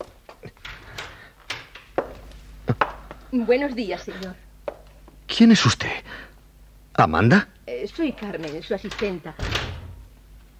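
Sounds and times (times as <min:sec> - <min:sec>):
door opening with a low scraping rub: 0:00.0 - 0:02.3, 0:08.0 - 0:10.2
speech: 0:03.3 - 0:04.4, 0:05.4 - 0:06.1, 0:07.0 - 0:09.6.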